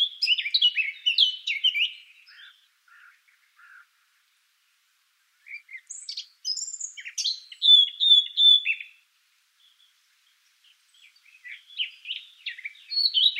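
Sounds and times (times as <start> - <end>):
Eurasian blackcap Sylvia atricapilla singing: 0.0 - 3.5, 5.4 - 9.0, 10.9 - 13.3.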